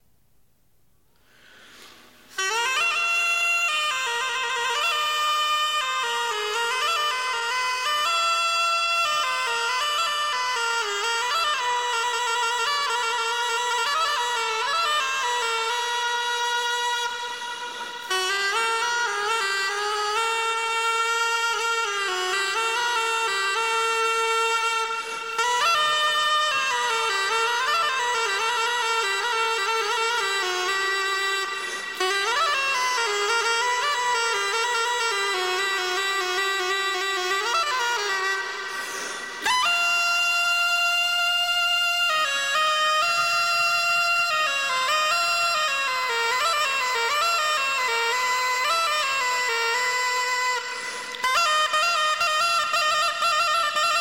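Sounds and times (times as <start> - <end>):
bagpipe: 1.2 - 54.0.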